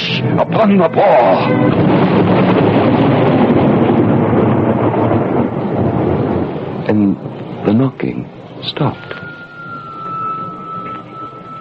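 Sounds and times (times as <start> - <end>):
cold wind rushing up a staircase: 0.0 - 11.5
speech: 0.2 - 3.5, 6.9 - 9.2.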